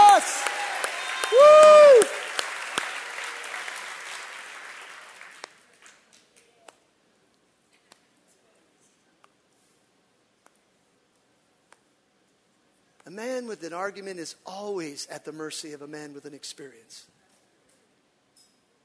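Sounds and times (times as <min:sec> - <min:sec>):
audience clapping hands: 0:00.0 - 0:06.5
speech: 0:13.5 - 0:17.2.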